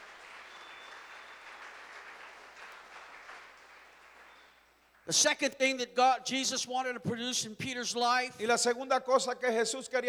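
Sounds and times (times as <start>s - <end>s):
audience clapping: 0.0s - 5.1s
speech: 5.1s - 10.0s.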